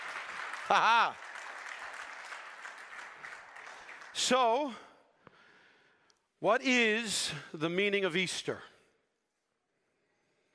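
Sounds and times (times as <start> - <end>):
audience applause: 0.0 - 4.8
speech: 0.7 - 1.2, 4.2 - 4.9, 6.4 - 8.7.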